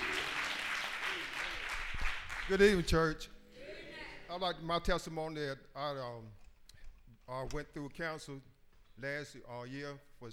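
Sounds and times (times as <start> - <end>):
audience applauding: 0.0 - 3.0
speech: 2.5 - 3.3, 4.3 - 6.4, 7.3 - 10.3.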